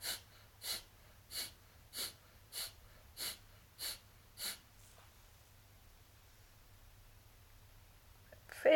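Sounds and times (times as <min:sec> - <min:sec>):
rapid forceful exhales through the nose: 0:00.0 - 0:04.7.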